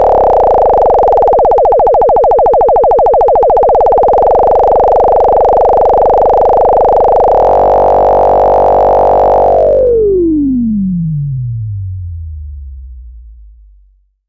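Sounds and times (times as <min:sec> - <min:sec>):
sawtooth synthesizer tone with filter cutoff resonance and ADSR envelope: 0:00.0 - 0:13.7.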